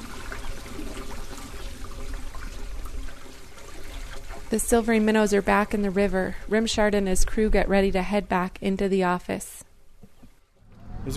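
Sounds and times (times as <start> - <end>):
water gushing from a pipe into a river: 0.0 - 7.1
speech: 4.5 - 9.6.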